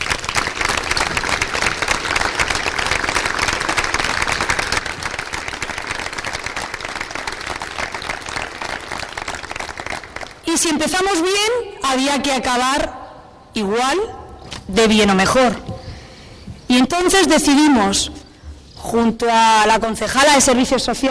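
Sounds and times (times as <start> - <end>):
audience applause: 0.0 - 10.4
speech: 10.6 - 13.0, 13.6 - 15.6, 16.7 - 18.2, 18.9 - 21.0.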